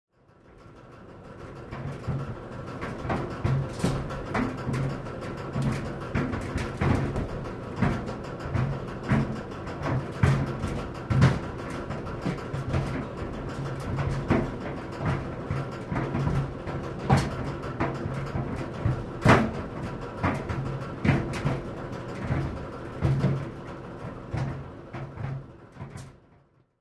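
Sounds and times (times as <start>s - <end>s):
clothes dryer running: 0.2s - 26.5s.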